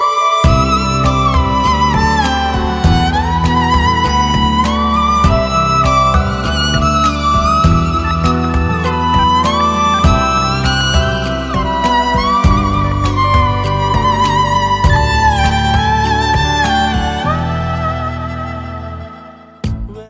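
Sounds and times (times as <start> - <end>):
music: 0.0 - 20.0.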